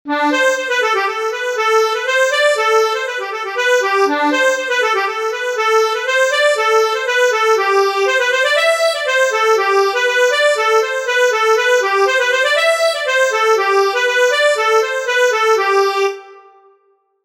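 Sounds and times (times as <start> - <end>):
polka music: 0.1 - 16.5.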